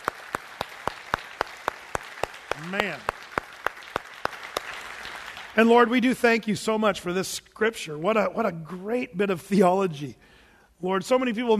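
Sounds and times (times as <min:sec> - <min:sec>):
sharp rhythmic claps in a church congregation: 0:00.0 - 0:06.0
church congregation applauding: 0:00.0 - 0:06.5
speech: 0:02.6 - 0:03.1, 0:05.6 - 0:11.5.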